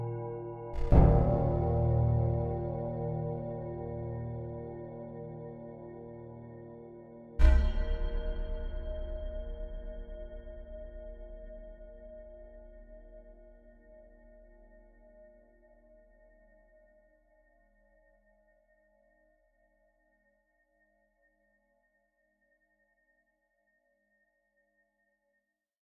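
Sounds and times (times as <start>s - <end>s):
group of gongs: 0.0s - 14.6s.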